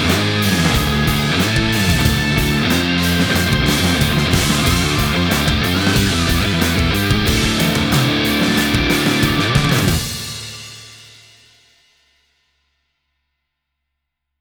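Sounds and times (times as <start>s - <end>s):
heavy band jam: 0.0s - 11.4s.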